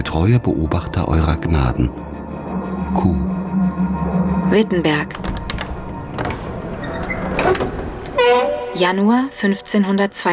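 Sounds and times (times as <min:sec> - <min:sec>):
speech: 0:00.0 - 0:02.1, 0:02.9 - 0:03.4, 0:04.5 - 0:05.3, 0:08.8 - 0:10.3
old church door creaking open on loose hinges: 0:05.0 - 0:09.0.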